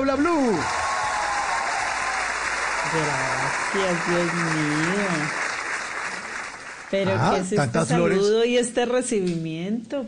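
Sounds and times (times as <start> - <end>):
speech: 0.0 - 0.8, 2.8 - 5.4, 6.9 - 10.0
audience applause: 0.4 - 7.3.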